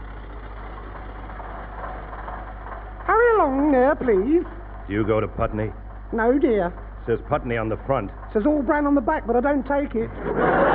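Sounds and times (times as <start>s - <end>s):
bus engine idling at a request stop: 0.0s - 10.7s
speech: 3.5s - 10.7s
laughter: 10.0s - 10.7s.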